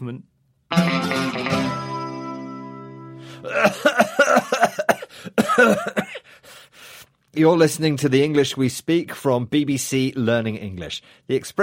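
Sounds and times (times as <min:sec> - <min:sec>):
speech: 0:00.0 - 0:01.8, 0:03.4 - 0:06.0, 0:07.4 - 0:11.6
person coughing: 0:03.4 - 0:06.4.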